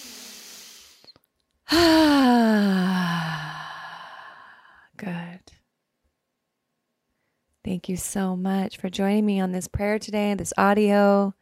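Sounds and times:
deep slow breath released as a voiced sigh: 1.7 - 4.8
speech: 7.6 - 11.4.

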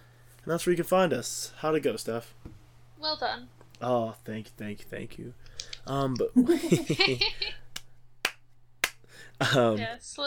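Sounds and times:
speech: 0.4 - 7.6, 9.4 - 10.2
laughter: 6.4 - 7.6
slow clap: 7.8 - 9.1.

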